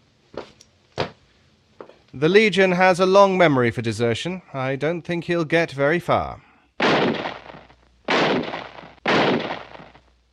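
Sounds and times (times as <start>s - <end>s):
speech: 2.1s - 6.5s
gunshots in a radio drama as a fleeing deserter is shot: 6.8s - 10.1s.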